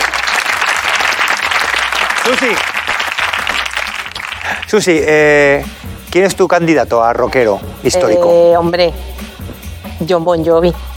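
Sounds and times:
applause: 0.0 - 4.9
speech: 2.3 - 2.7, 4.7 - 9.2, 10.0 - 10.9.

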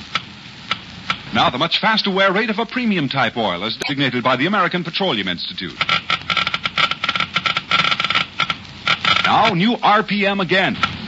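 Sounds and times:
speech: 1.4 - 6.0, 9.3 - 11.0
Geiger counter clicking: 5.7 - 9.6.

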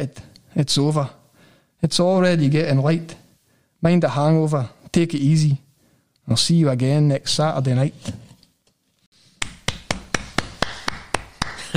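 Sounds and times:
speech: 0.0 - 1.2, 1.8 - 3.2, 3.8 - 5.6, 6.3 - 8.2
small audience clapping: 9.4 - 11.7.

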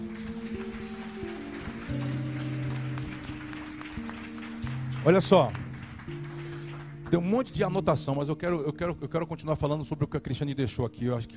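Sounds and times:
audience applause: 0.0 - 7.5
speech: 5.0 - 5.6, 7.1 - 11.3.

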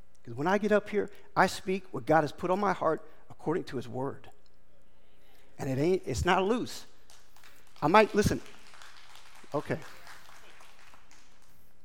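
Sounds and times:
speech: 0.3 - 4.3, 5.6 - 6.9, 7.8 - 8.6, 9.5 - 10.0
audience applauding: 7.1 - 11.8.

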